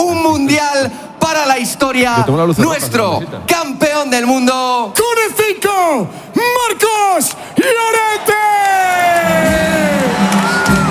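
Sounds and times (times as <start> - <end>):
speech: 0.8 - 10.8
stadium crowd cheering and whooping as a World Cup-winning footballer is introduced: 7.9 - 10.9.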